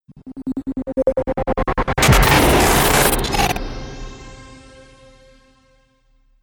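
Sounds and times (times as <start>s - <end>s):
glitch sound effect: 0.5s - 5.5s
trailer hit: 1.6s - 5.6s.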